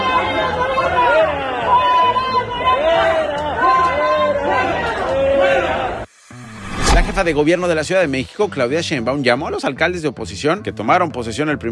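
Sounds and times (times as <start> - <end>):
airport crowd shouting at a politician: 0.0 - 6.0
speech: 7.2 - 11.7.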